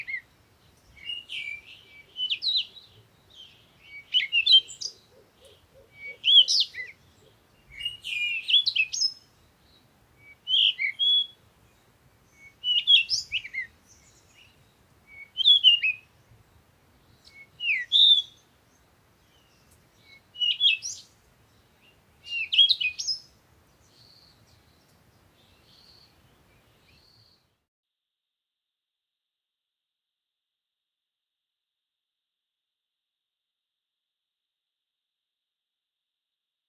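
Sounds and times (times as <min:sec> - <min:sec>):
birds singing chirped and twittering phrases: 0:00.0 - 0:27.5.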